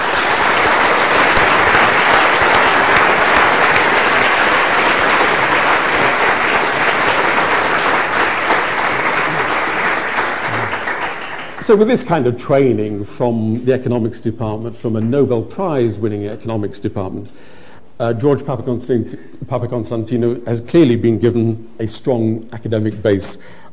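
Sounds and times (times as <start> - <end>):
audience applause: 0.0 - 11.9
speech: 11.7 - 23.7.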